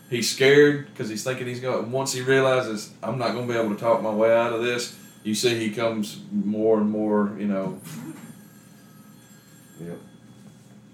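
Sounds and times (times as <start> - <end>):
speech: 0.1 - 8.2, 9.8 - 10.1
telephone ringing: 2.3 - 6.0, 7.8 - 10.9.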